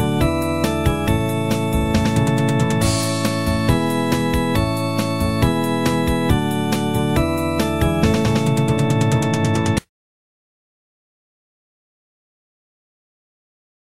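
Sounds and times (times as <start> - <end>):
solo music: 0.0 - 9.8.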